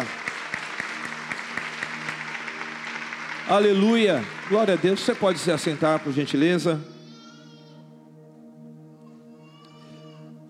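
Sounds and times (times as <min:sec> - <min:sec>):
crowd clapping in rhythm: 0:00.0 - 0:06.7
sustained low musical tones: 0:00.0 - 0:10.4
speech: 0:03.5 - 0:06.9.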